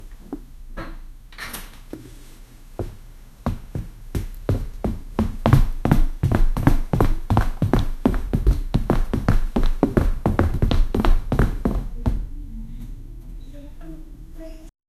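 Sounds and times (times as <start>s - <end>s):
footsteps running on office carpet: 2.8s - 12.3s.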